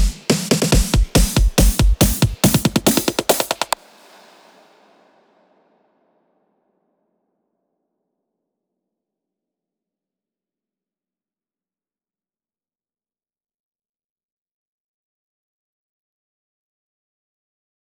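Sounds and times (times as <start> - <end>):
140 BPM intro break drums: 0.0 - 4.6.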